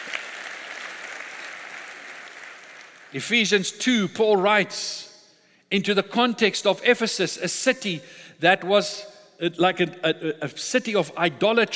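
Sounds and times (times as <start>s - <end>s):
audience applause: 0.0s - 3.1s
speech: 3.1s - 5.1s, 5.7s - 11.7s.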